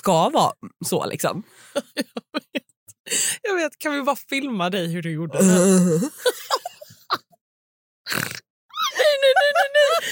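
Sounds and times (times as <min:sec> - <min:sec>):
speech: 0:00.0 - 0:02.3, 0:03.1 - 0:06.7
person laughing: 0:01.8 - 0:02.6, 0:05.9 - 0:07.3, 0:08.8 - 0:10.1
person imitating a pig grunt: 0:05.3 - 0:06.2, 0:08.1 - 0:08.4.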